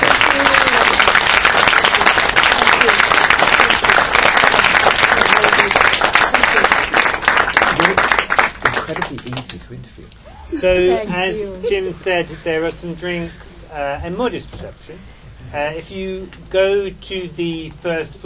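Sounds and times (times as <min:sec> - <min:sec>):
room full of people applauding: 0:00.0 - 0:09.8
speech: 0:10.6 - 0:18.2.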